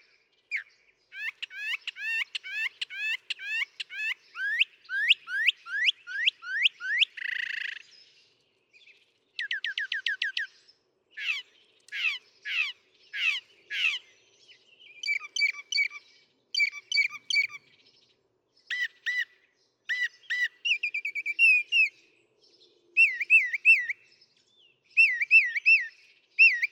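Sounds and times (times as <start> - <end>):
northern mockingbird singing: 0.5 - 7.9, 9.4 - 10.5, 11.1 - 14.1, 14.9 - 17.7, 18.7 - 19.3, 19.9 - 22.0, 23.0 - 24.0, 25.0 - 26.7.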